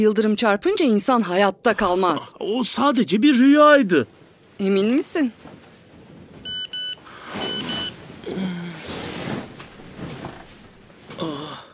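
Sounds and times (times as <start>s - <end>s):
speech: 0.0s - 5.6s
text message notification beeps: 6.5s - 8.0s.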